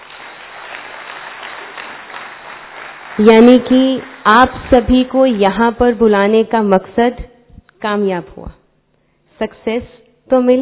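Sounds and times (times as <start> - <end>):
loud audience applause: 0.0 - 4.6
speech: 3.2 - 8.6, 9.4 - 10.5.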